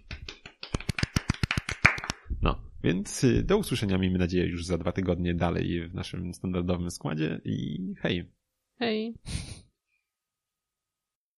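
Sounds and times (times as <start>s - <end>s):
hand clapping: 0.0s - 2.3s
speech: 2.4s - 9.5s.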